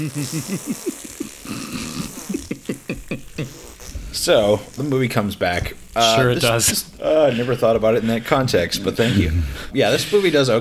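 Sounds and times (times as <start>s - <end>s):
speech: 0.0s - 2.0s, 2.7s - 3.6s, 4.2s - 10.5s
laughter: 0.0s - 3.6s, 6.0s - 10.5s
lever pull sounding like a wet fart: 0.0s - 7.0s.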